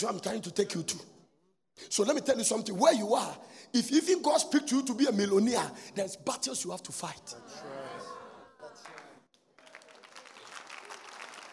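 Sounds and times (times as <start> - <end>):
speech: 0.0 - 1.2, 1.8 - 7.8
audience applause at a speech about faith and success: 8.8 - 11.5.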